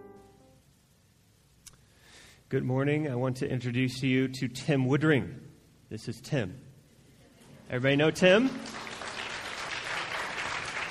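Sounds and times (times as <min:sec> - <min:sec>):
speech: 0:02.5 - 0:06.7, 0:07.7 - 0:08.8
audience applause: 0:08.4 - 0:10.8.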